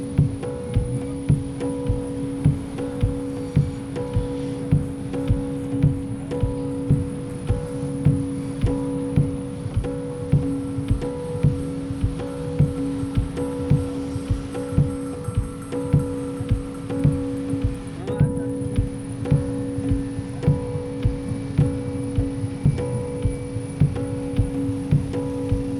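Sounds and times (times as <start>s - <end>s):
field recording mix: 0.0s - 25.7s.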